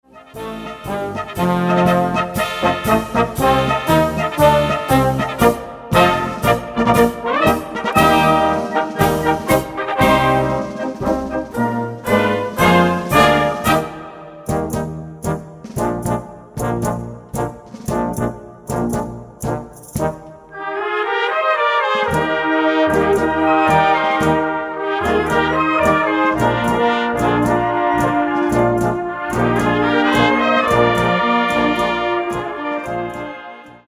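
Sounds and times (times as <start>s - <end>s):
march music: 0.0s - 33.8s.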